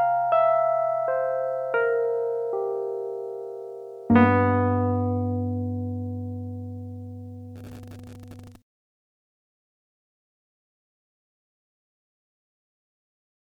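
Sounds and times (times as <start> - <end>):
electric piano: 0.0 - 8.6.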